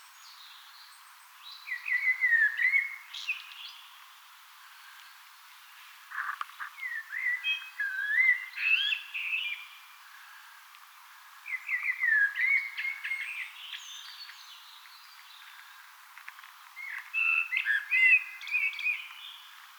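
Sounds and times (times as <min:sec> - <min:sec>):
Eurasian blackbird singing: 0:01.5 - 0:03.9, 0:06.2 - 0:09.8, 0:11.5 - 0:15.5, 0:16.8 - 0:19.5.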